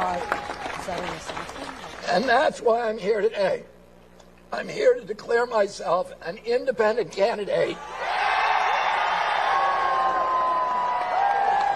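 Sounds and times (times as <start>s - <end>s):
crowd applause at a rally: 0.0s - 2.3s, 8.0s - 11.7s
speech: 2.1s - 3.8s, 4.5s - 8.1s.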